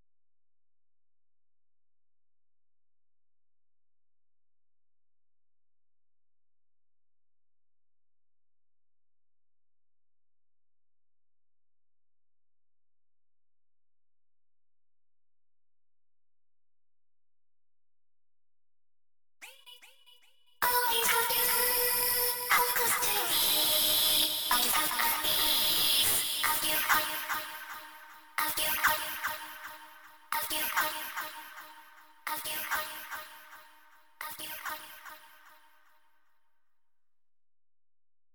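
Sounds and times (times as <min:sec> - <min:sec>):
a cappella singing: 0:19.4 - 0:35.7.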